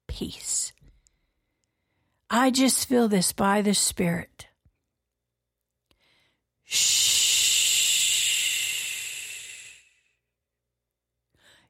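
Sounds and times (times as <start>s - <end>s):
speech: 0.2s - 0.8s, 2.3s - 4.4s, 6.7s - 7.0s
voice making a shh hiss: 6.7s - 10.2s.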